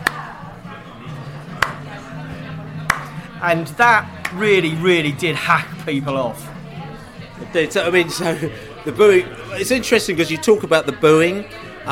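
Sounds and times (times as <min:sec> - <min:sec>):
low murmur of voices: 0:00.0 - 0:11.9
slow hand clap: 0:01.6 - 0:01.8, 0:02.9 - 0:03.2, 0:04.2 - 0:04.4
speech: 0:03.4 - 0:06.5, 0:07.5 - 0:11.9.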